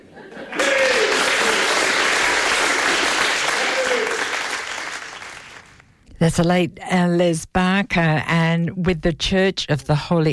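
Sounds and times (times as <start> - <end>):
audience applause: 0.4 - 5.8
speech: 6.2 - 10.3.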